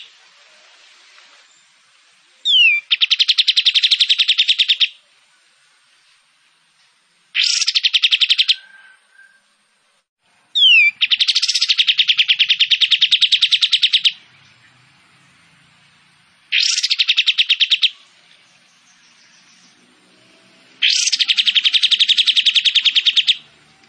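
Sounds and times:
Kapas tembak songbird song: 0:02.4 - 0:05.0, 0:07.4 - 0:09.4, 0:10.6 - 0:14.3, 0:16.5 - 0:19.8, 0:20.8 - 0:23.5.

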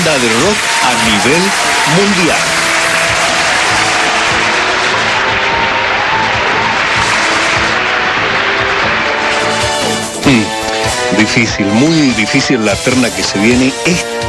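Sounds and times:
applause: 0:00.0 - 0:11.3
speech: 0:00.2 - 0:02.5, 0:11.2 - 0:14.2.

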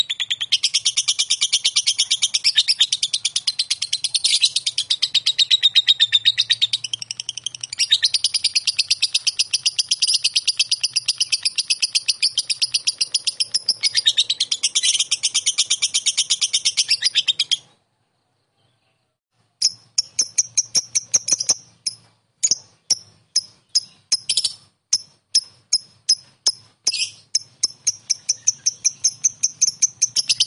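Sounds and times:
lovebird chattering song: 0:00.0 - 0:30.4.

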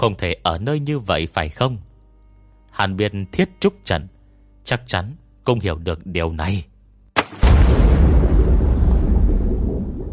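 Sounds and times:
speech: 0:00.0 - 0:01.9, 0:02.8 - 0:06.7
loud splash of large rock into water: 0:07.2 - 0:10.1.

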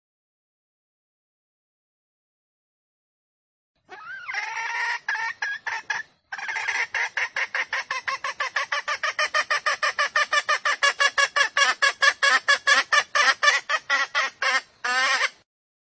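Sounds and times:
junglefowl hen cackling: 0:03.9 - 0:15.4.

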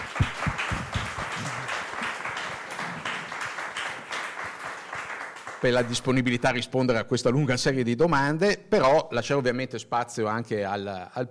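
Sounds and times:
audience applause: 0:00.0 - 0:06.4
speech: 0:05.6 - 0:11.2.

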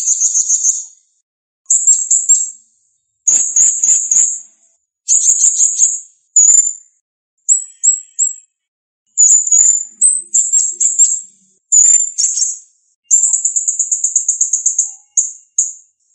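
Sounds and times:
blue-crowned hanging parrot high thin shrill song and trills: 0:00.0 - 0:00.9, 0:03.3 - 0:04.4, 0:05.1 - 0:06.8, 0:07.4 - 0:08.5, 0:09.1 - 0:16.1.

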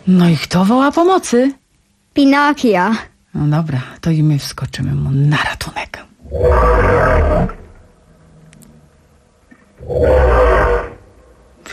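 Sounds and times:
speech: 0:00.0 - 0:01.6, 0:02.2 - 0:07.6, 0:09.9 - 0:10.2
whale roaring: 0:06.2 - 0:07.8, 0:09.8 - 0:11.2.

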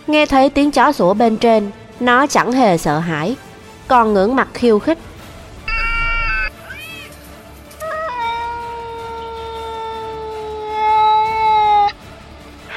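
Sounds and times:
speech: 0:00.0 - 0:05.1
black cat meowing: 0:05.7 - 0:07.1, 0:07.8 - 0:12.0.

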